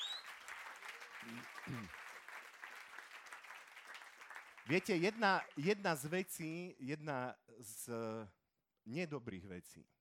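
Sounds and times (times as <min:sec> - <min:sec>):
audience applause: 0:00.0 - 0:06.3
speech: 0:01.2 - 0:02.0, 0:04.7 - 0:09.9.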